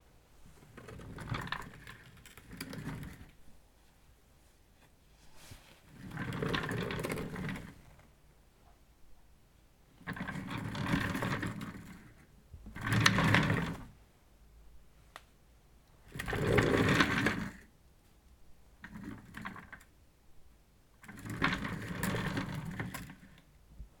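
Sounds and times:
office chair: 0.5s - 3.4s, 5.2s - 8.0s, 10.0s - 14.0s, 16.1s - 17.6s, 18.8s - 19.8s, 21.0s - 23.4s.

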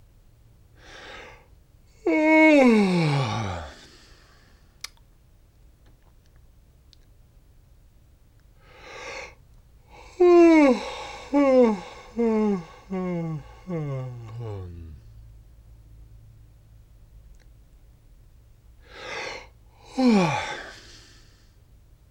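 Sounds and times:
person yawning: 2.0s - 4.1s, 10.0s - 15.1s, 19.3s - 20.9s.

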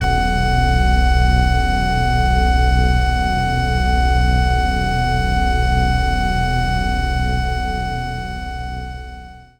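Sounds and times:
digital organ lead pad C1: 0.0s - 9.0s.

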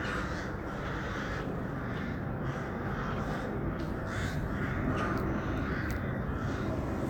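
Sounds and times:
crowd of crows cawing: 0.0s - 7.0s.

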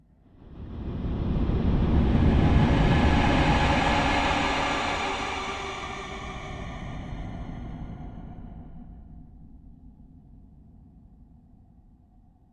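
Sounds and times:
horror whoosh: 0.5s - 9.1s.

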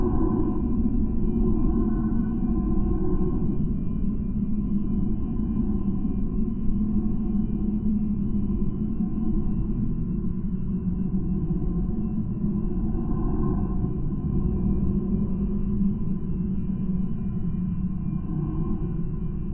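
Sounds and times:
horror ambience: 0.0s - 19.5s.

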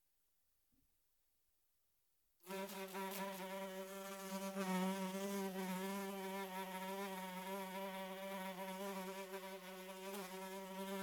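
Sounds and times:
fly buzzing: 2.5s - 11.0s.

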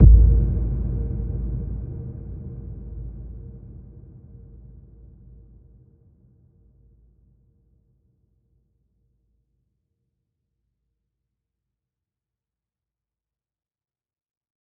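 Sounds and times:
deep impact: 0.0s - 3.5s.

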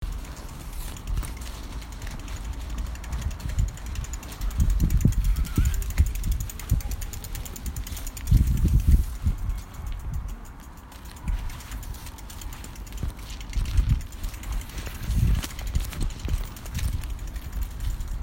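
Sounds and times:
bike chain: 0.0s - 18.2s.

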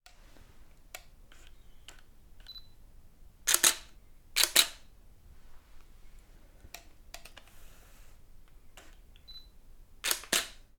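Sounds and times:
camera: 3.5s - 4.8s, 10.0s - 10.6s.

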